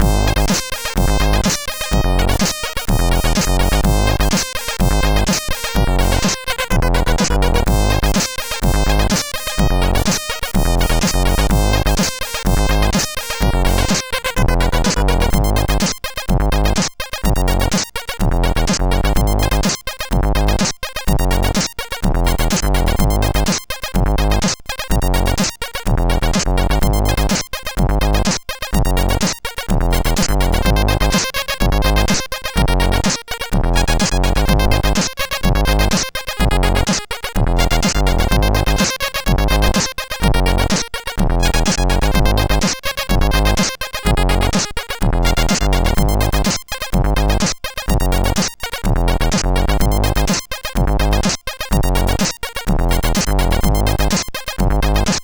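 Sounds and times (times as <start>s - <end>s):
SID CSG8580R5 chip music: 0.0s - 55.2s.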